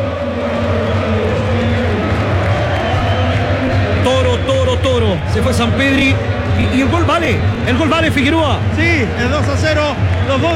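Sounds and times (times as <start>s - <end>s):
stadium crowd singing: 0.0s - 8.2s
speech: 5.4s - 10.5s.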